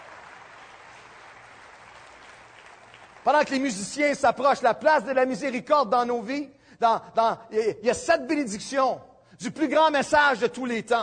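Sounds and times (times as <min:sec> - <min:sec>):
church congregation applauding during a sermon: 0:00.0 - 0:03.6
speech: 0:03.2 - 0:11.0.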